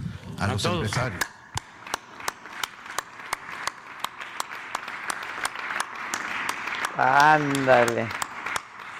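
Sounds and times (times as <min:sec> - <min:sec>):
speech: 0:00.4 - 0:01.3, 0:07.0 - 0:08.2
small group clapping: 0:00.9 - 0:08.9.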